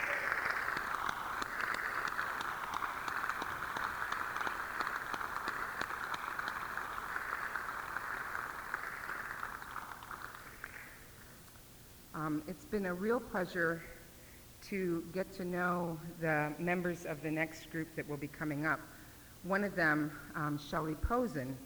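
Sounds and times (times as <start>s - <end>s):
audience applause: 0.0s - 11.6s
speech: 12.5s - 13.9s, 14.7s - 21.6s.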